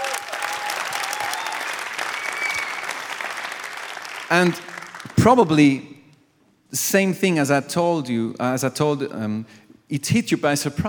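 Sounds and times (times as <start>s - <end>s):
faint cheer or whistle: 0.0s - 3.0s
crowd clapping: 0.0s - 5.6s
speech: 4.3s - 5.9s, 6.7s - 10.8s.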